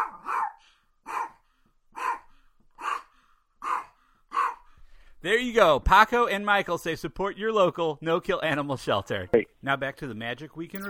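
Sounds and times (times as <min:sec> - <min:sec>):
dog barking: 0:00.0 - 0:04.7
speech: 0:05.2 - 0:10.8.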